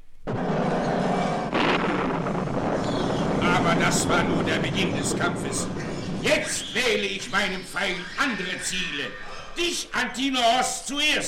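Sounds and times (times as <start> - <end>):
thunderclap: 0.0 - 8.1
speech: 3.8 - 11.2.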